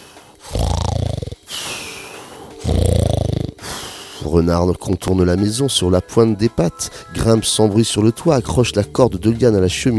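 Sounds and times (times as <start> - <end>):
wolf breathing in sleep behind door: 0.0 - 4.2
speech: 4.3 - 9.9.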